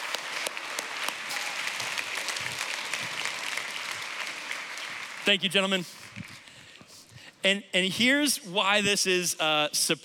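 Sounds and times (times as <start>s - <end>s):
audience applause: 0.0s - 6.6s
speech: 5.3s - 6.0s, 7.4s - 10.0s.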